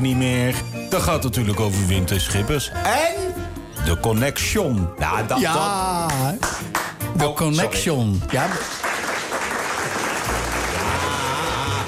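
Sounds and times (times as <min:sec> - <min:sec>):
speech: 0:00.0 - 0:08.8
audience applause: 0:08.3 - 0:11.8.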